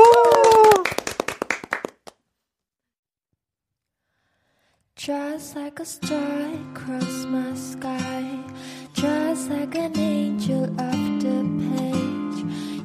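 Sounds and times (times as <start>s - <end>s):
applause: 0.0s - 2.2s
music: 5.0s - 12.8s.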